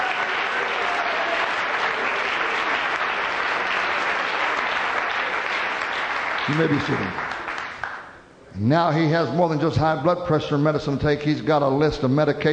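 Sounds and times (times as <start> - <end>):
audience clapping hands in praise: 0.0 - 8.3
speech: 6.5 - 7.3, 8.6 - 12.5.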